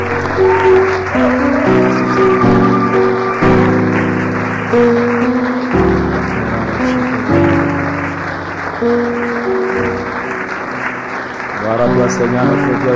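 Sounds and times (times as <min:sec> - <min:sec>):
audience applauding and acclaiming: 0:00.0 - 0:12.9
speech: 0:12.1 - 0:12.9.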